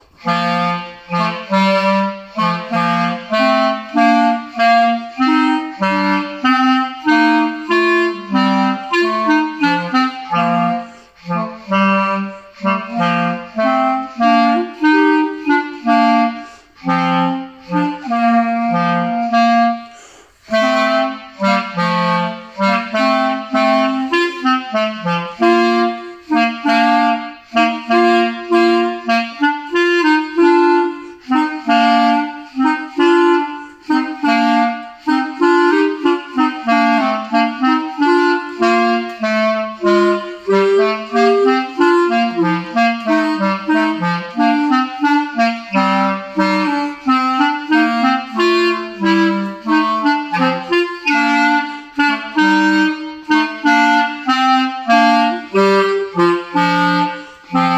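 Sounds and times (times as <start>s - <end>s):
two clarinets playing: 0.0s - 57.7s.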